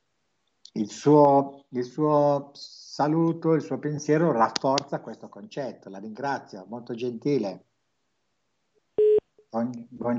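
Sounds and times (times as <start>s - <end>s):
speech: 0.7s - 7.7s, 9.5s - 10.1s
telephone tone as call drops: 9.0s - 9.2s.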